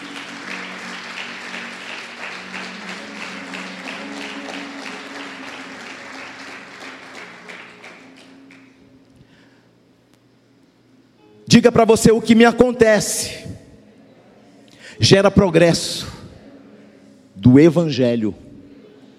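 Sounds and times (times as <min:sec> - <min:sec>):
crowd applauding in a reverberant room: 0:00.0 - 0:08.8
low sustained musical hum: 0:00.0 - 0:19.1
speech: 0:11.5 - 0:13.5, 0:15.0 - 0:16.1, 0:17.5 - 0:18.4.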